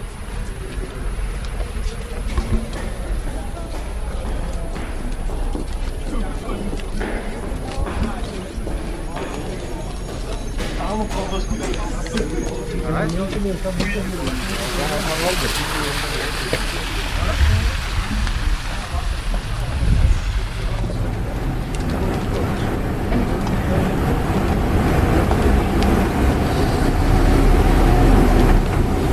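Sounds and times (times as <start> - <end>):
train station sounds: 0.0 - 29.1.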